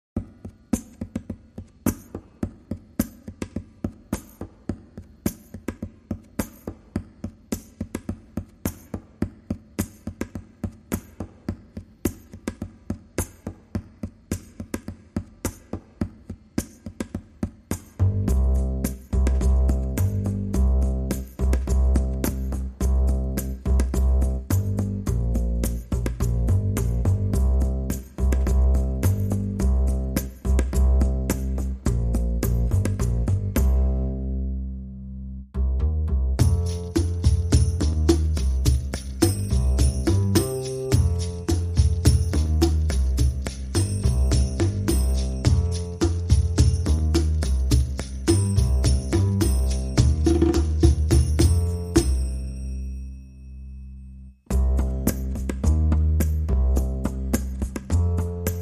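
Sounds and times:
drums: 0:00.1 - 0:34.0, 0:35.6 - 0:52.4, 0:54.5 - 0:58.6
bass: 0:17.8 - 0:58.6.

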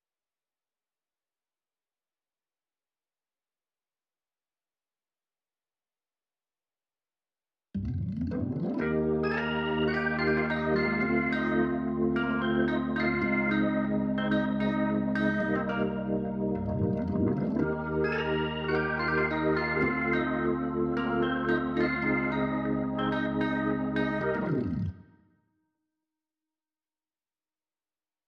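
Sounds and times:
keyboard playing: 0:07.8 - 0:25.0.

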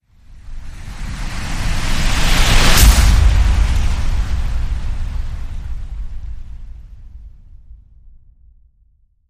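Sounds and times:
wave surge boom: 0:01.5 - 0:07.0.

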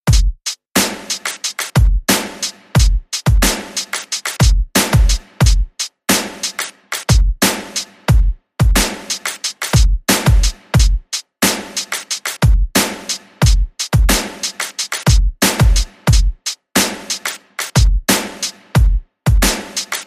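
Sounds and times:
beat: 0:00.0 - 0:20.0.

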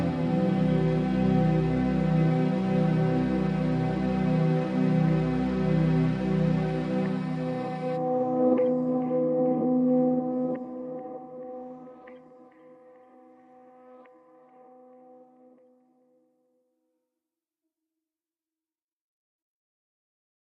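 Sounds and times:
ambient music: 0:00.0 - 0:16.1.

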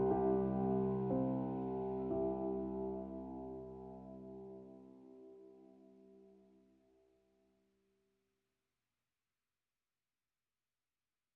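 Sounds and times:
piano: 0:00.0 - 0:07.1.

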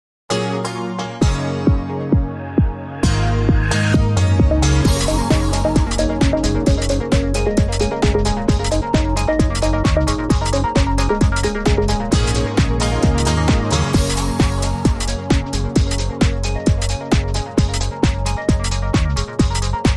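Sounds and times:
happy groove music: 0:00.3 - 0:19.9.

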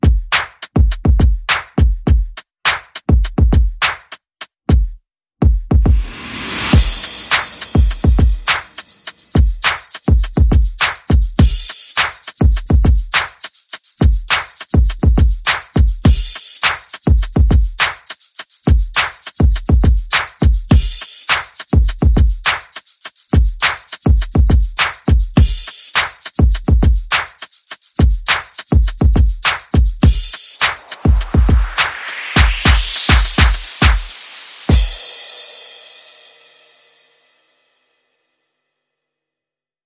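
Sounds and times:
percussion: 0:00.0 - 0:37.5
sound effects: 0:30.6 - 0:35.0.

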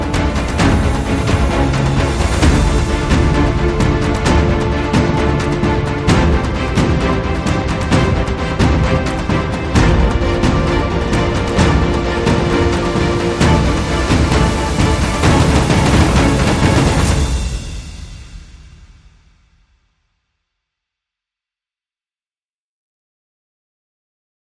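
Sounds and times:
string instruments playing without brass or lead: 0:00.0 - 0:18.7.

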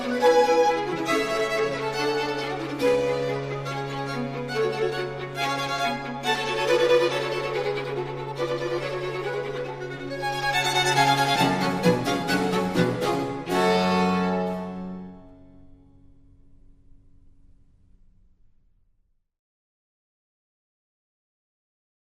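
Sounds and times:
concerto in G minor for violin, strings and basso continuo: 0:00.0 - 0:15.3.

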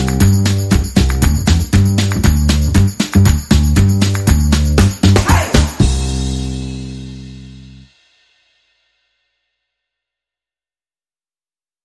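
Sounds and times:
rhythm and bass mix: 0:00.0 - 0:07.9.

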